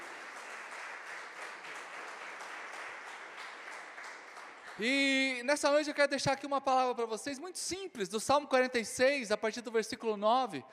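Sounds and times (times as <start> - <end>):
audience applauding: 0.0 - 5.4
speech: 4.8 - 10.7.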